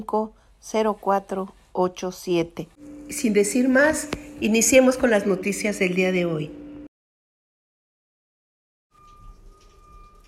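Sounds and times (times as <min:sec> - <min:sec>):
speech: 0:00.0 - 0:06.6
rain: 0:09.1 - 0:10.2.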